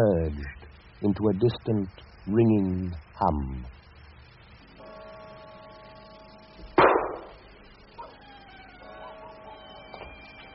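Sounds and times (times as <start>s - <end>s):
speech: 0.0s - 3.8s
distant gunshot: 6.8s - 7.4s.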